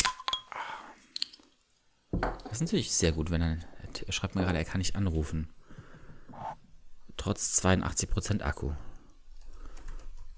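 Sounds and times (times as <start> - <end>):
soft-drink bottle cap cracking open: 0.0 - 0.4
speech: 2.5 - 5.6, 7.2 - 8.9.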